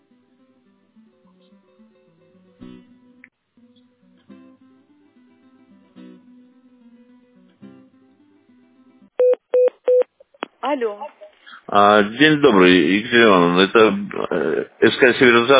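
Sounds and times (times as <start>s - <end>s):
telephone dialing beeps: 9.2s - 10.1s
speech: 10.7s - 15.5s.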